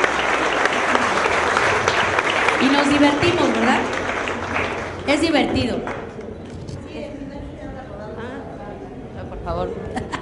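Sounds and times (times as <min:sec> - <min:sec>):
audience applause: 0:00.0 - 0:06.2
speech: 0:02.6 - 0:04.0, 0:05.1 - 0:05.9, 0:09.5 - 0:09.9.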